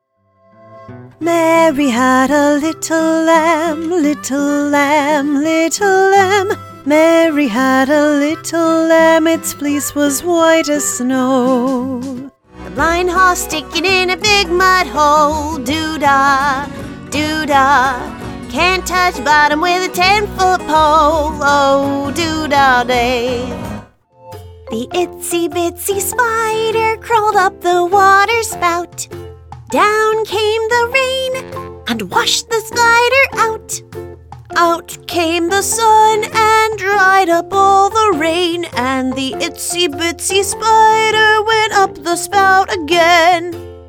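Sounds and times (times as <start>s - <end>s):
person singing: 1.2s - 23.7s, 24.7s - 29.1s, 29.7s - 33.8s, 34.5s - 43.6s.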